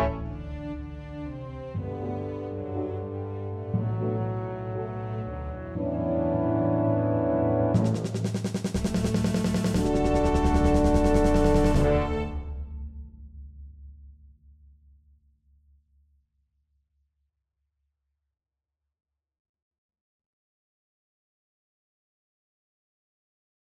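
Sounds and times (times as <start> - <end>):
heavy melody: 0.0 - 12.6.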